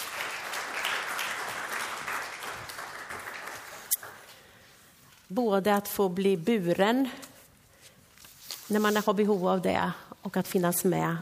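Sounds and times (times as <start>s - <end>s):
audience applause: 0.0s - 4.3s
speech: 5.3s - 7.3s, 8.7s - 11.2s.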